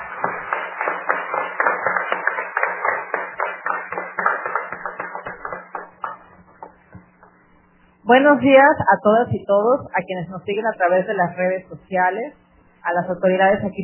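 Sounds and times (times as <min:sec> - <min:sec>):
students applauding: 0:00.0 - 0:06.9
speech: 0:08.1 - 0:13.8.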